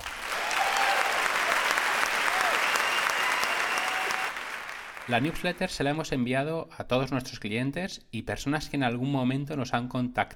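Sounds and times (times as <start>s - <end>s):
applause: 0.0s - 5.8s
speech: 5.1s - 10.3s.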